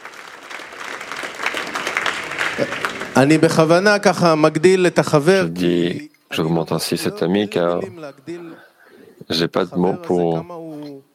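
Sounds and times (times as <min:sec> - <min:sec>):
audience applause: 0:00.0 - 0:03.7
speech: 0:02.6 - 0:11.0.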